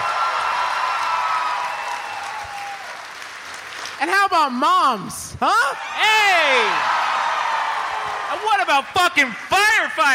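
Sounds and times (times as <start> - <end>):
audience clapping for teachers: 0.0 - 4.3, 6.5 - 9.8
speech: 4.0 - 7.1, 8.3 - 10.1.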